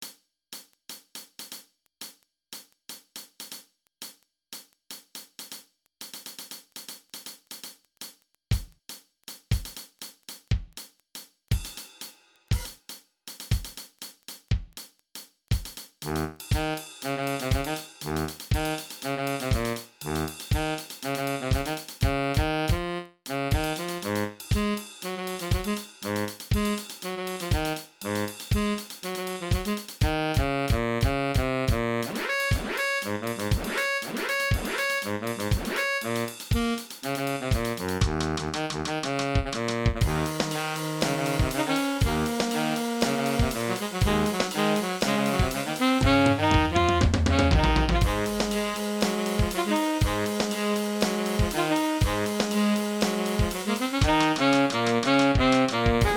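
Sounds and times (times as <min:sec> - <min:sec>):
MIDI music: 0:16.1 - 0:56.1.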